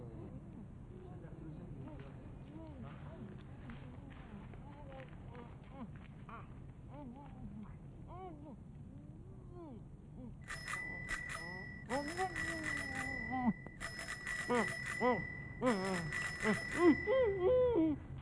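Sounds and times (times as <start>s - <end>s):
bicycle bell ringing: 10.5s - 17.5s
speech: 14.5s - 18.0s.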